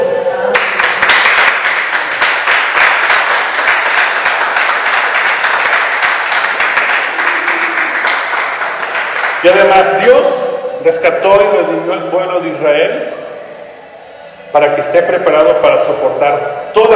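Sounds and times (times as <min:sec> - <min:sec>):
applause: 0:00.5 - 0:09.7
speech: 0:09.4 - 0:13.2, 0:14.5 - 0:16.9.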